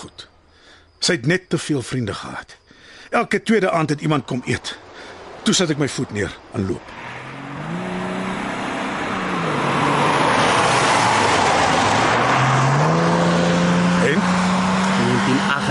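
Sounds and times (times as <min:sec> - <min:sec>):
speech: 0:01.0 - 0:04.8, 0:05.4 - 0:07.0
BMW 325iS engine with free-flow exhaust revving: 0:06.9 - 0:15.6.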